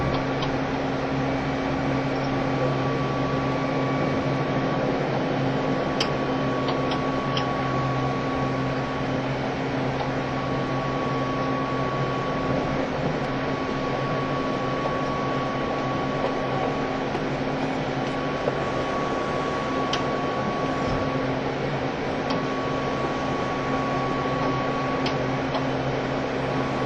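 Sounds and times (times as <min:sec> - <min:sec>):
JR East E351 series tilting train running roar on a Super Azusa express: 0:00.0 - 0:26.8
thin constant whine near 1 kHz: 0:00.0 - 0:26.8
train motor hum: 0:00.0 - 0:26.8.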